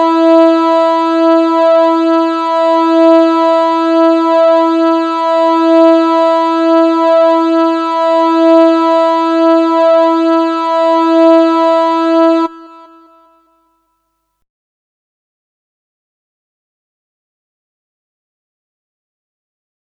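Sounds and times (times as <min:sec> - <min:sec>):
first string E: 0:00.0 - 0:13.4.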